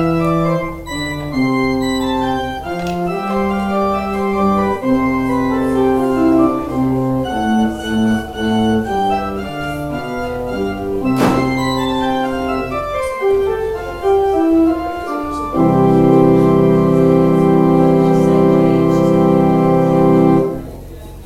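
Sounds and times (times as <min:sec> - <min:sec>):
organ outro: 0:00.0 - 0:21.0.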